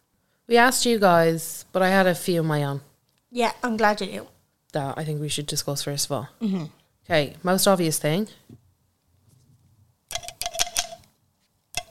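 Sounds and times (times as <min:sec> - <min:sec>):
speech: 0:00.5 - 0:08.4
glass straws clinking together: 0:10.1 - 0:11.1.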